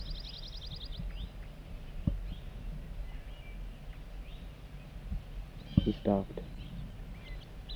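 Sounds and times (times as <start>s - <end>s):
soft zert zert bird song: 0.0s - 7.7s
speech: 5.9s - 6.6s.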